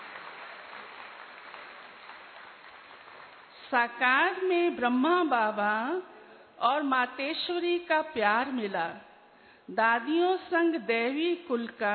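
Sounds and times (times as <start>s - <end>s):
loud applause: 0.0s - 3.6s
speech: 3.7s - 9.1s, 9.7s - 11.9s.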